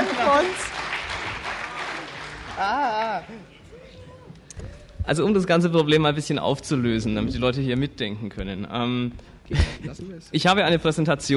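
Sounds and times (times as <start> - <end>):
audience clapping: 0.0 - 3.8
speech: 0.3 - 0.8, 2.6 - 3.6, 5.1 - 11.3.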